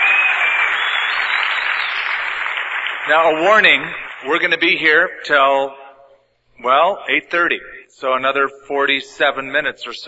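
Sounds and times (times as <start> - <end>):
church congregation applauding: 0.0 - 5.4
speech: 3.1 - 5.8, 6.6 - 10.0.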